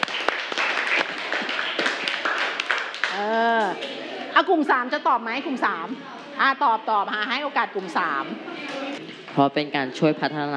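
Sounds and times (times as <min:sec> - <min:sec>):
classroom clapping for a classmate: 0:00.0 - 0:04.1
speech: 0:04.4 - 0:08.5, 0:09.3 - 0:10.5.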